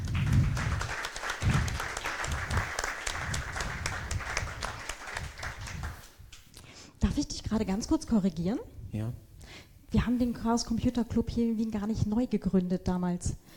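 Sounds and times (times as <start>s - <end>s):
audience applause: 0.0s - 6.1s
speech: 7.5s - 9.3s, 9.9s - 13.5s.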